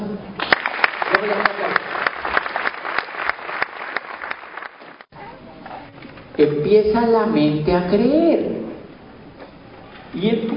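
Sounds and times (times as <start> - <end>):
audience applause: 0.4 - 5.1
speech: 1.2 - 1.9, 6.4 - 8.5, 10.2 - 10.4.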